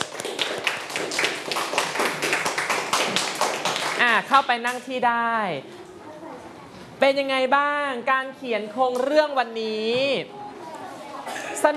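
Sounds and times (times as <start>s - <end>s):
students clapping: 0.0s - 4.3s
speech: 4.2s - 5.8s, 7.0s - 10.4s.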